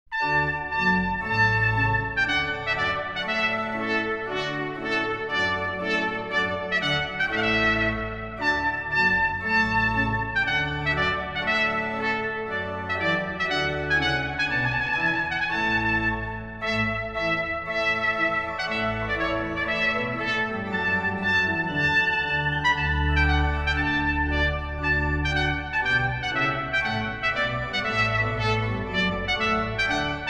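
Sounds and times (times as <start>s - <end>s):
trumpet tune: 0.1s - 30.2s.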